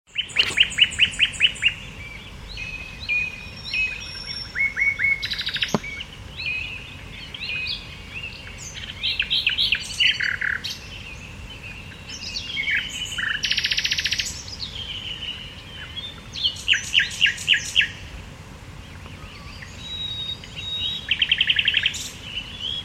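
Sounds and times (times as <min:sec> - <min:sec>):
common nightingale song: 0:00.1 - 0:18.2, 0:18.8 - 0:22.8.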